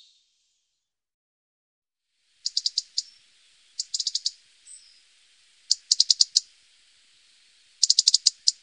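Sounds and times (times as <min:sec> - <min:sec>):
European robin giving sharp high ticks: 0:02.4 - 0:05.0, 0:05.7 - 0:06.5, 0:07.8 - 0:08.6.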